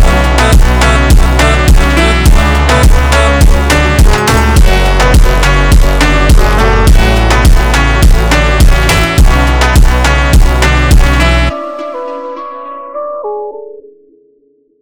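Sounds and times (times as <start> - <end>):
super slowed jumpstyle music: 0.0 - 11.8.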